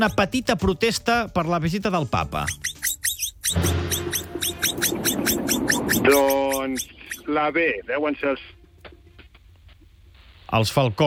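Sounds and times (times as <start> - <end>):
speech: 0.0 - 4.0, 6.0 - 8.6, 10.5 - 11.0
capybara vocalizing: 2.2 - 7.4.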